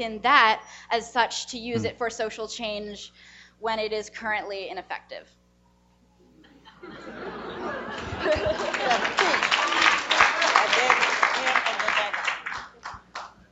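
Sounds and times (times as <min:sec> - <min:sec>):
speech: 0:00.0 - 0:05.4, 0:06.8 - 0:09.4
laughter: 0:06.6 - 0:10.8
audience applause: 0:07.5 - 0:13.2.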